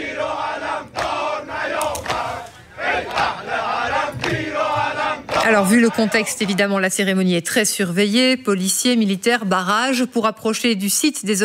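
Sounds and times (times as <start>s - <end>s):
crowd chanting in support: 0.0s - 6.7s
speech: 5.5s - 11.4s.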